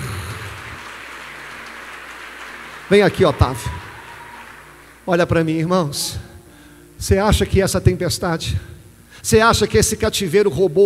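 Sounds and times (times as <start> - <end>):
audience applauding: 0.0 - 5.1
speech: 2.9 - 3.9, 5.1 - 6.3, 7.0 - 10.8.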